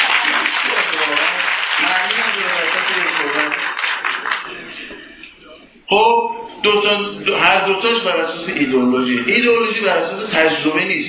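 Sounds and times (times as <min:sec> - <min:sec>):
audience applause: 0:00.0 - 0:04.9
speech: 0:05.9 - 0:11.0.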